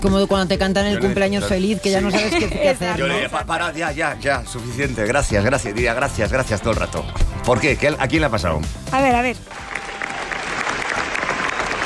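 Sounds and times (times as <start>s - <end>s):
speech: 0.0s - 9.7s
long applause after film premiere: 9.4s - 11.8s.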